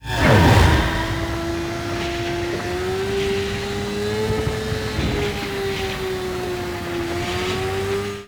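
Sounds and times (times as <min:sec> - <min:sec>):
vehicle convoy passing: 0:00.0 - 0:08.2.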